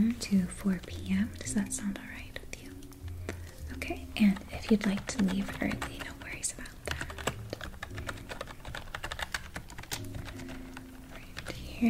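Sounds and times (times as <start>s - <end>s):
speech: 0.0s - 2.4s, 3.7s - 6.8s
typing on a computer keyboard: 3.7s - 11.8s.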